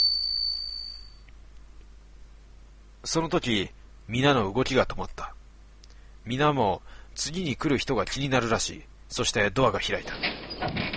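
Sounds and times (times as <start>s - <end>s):
front door chime ringing: 0.0s - 1.2s
speech: 3.0s - 5.4s, 6.3s - 10.4s.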